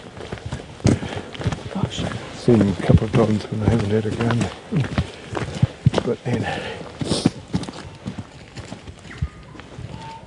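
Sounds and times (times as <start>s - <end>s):
footsteps of several walkers through the bush: 0.0s - 10.2s
speech: 1.9s - 5.4s, 6.0s - 7.2s
faint bird calls chirping: 9.0s - 10.2s.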